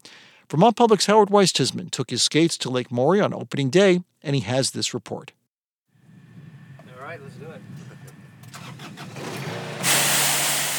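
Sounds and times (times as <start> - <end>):
speech: 0.5 - 5.4
golf course lawnmower engine starting: 8.4 - 10.7.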